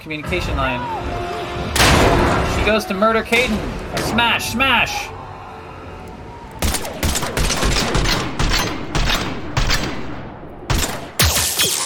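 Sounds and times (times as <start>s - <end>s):
speech: 0.0s - 5.2s
video game gunfire: 6.6s - 11.8s.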